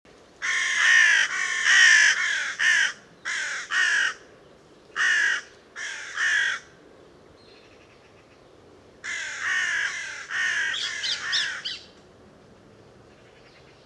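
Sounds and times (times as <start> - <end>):
Carrion crow (Corvus corone) cawing harshly: 0.4 - 4.3, 5.0 - 6.7, 9.0 - 11.8.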